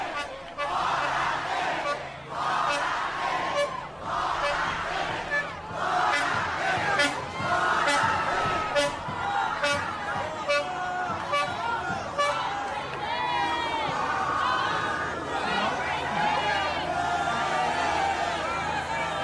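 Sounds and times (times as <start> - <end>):
horn toots: 0.0 - 12.7
crowd chanting at a political rally: 0.0 - 19.2.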